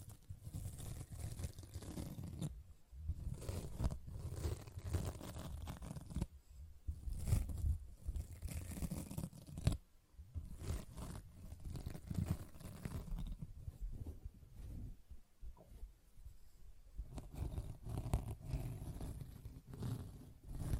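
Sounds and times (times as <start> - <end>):
sponge rubbed and squished: 0.0 - 6.3, 7.0 - 9.8, 10.4 - 13.6, 17.0 - 20.7.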